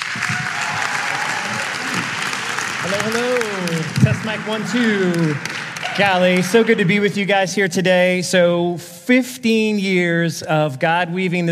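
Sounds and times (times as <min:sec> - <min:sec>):
audience applause at a school chapel service: 0:00.0 - 0:07.4
speech: 0:02.9 - 0:11.5.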